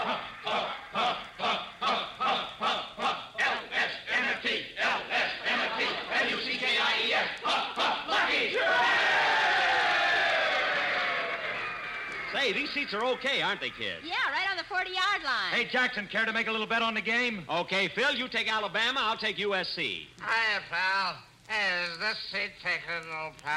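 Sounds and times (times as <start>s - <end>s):
stadium crowd cheering at football game: 0.0s - 14.4s
speech: 12.7s - 23.5s.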